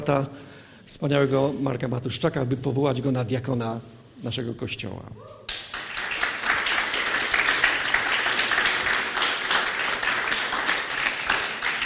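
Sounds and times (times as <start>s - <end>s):
speech: 0.0s - 5.5s
applause: 5.5s - 11.8s.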